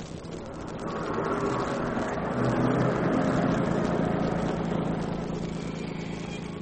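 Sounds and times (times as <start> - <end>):
car approaching from behind: 0.4 - 6.5.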